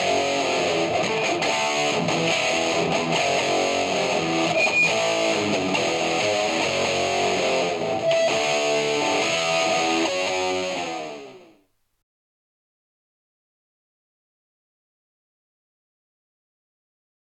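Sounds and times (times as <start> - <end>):
guitar: 0.0 - 11.7.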